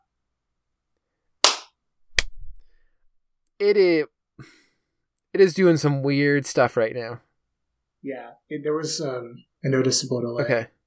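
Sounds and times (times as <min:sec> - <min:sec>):
hand clap for audio sync: 0:01.4 - 0:02.3
speech: 0:03.6 - 0:04.6, 0:05.4 - 0:07.3, 0:08.0 - 0:10.8.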